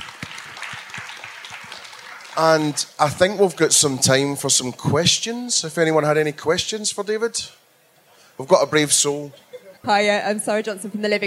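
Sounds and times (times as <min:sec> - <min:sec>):
crowd clapping: 0:00.0 - 0:04.1
speech: 0:02.4 - 0:07.6, 0:08.4 - 0:11.2.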